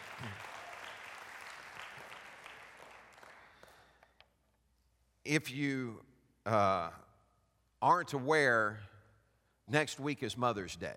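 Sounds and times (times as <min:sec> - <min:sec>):
audience applause: 0:00.0 - 0:03.8
speech: 0:05.3 - 0:07.0, 0:07.8 - 0:08.9, 0:09.7 - 0:10.9.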